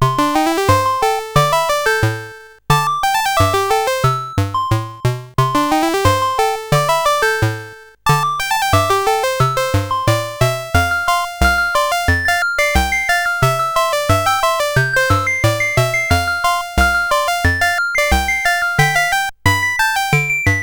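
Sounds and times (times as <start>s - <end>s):
chiptune music on a SID CSG 8580R5 chip: 0.0s - 20.6s.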